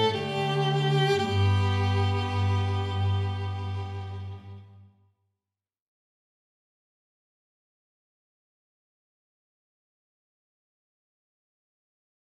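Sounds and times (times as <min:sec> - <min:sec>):
ensemble playing: 0:00.0 - 0:04.6.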